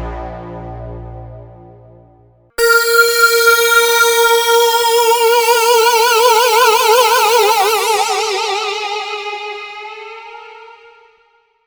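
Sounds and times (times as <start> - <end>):
DSS synced delay effect: 2.6 - 9.1.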